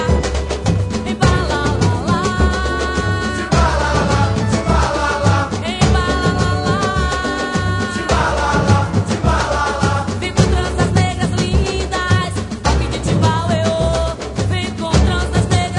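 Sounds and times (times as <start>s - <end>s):
samba timbal drumming: 0.0s - 15.7s.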